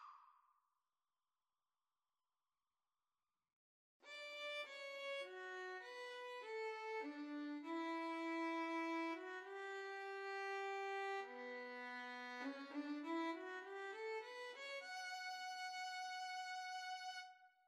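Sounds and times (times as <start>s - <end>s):
violin and cello duet: 4.1s - 17.4s.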